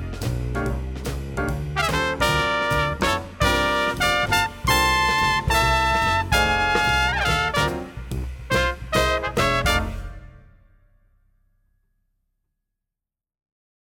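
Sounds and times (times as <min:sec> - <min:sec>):
jazz trumpet: 0:00.0 - 0:11.0.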